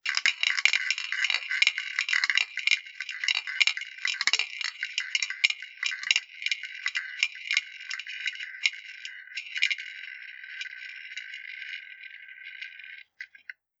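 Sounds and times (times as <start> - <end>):
spin: 0.0 - 13.6.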